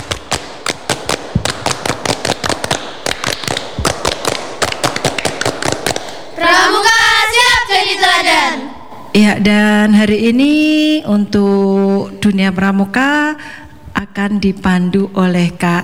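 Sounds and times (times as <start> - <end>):
scout rhythmic hand clapping: 0.0 - 9.6
speech: 7.8 - 15.8.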